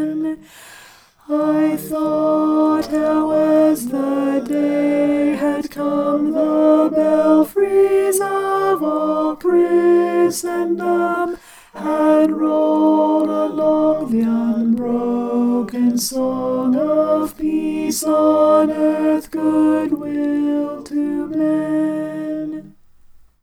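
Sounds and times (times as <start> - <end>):
alto voice singing: 0.0 - 23.4.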